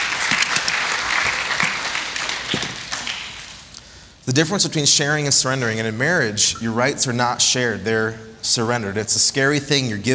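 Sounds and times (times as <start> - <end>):
audience applause during a talk on marriage: 0.0 - 3.6
speech: 4.3 - 10.1.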